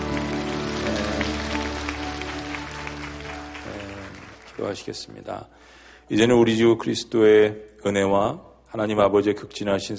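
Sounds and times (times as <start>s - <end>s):
audience applauding: 0.0s - 5.2s
speech: 4.6s - 9.9s.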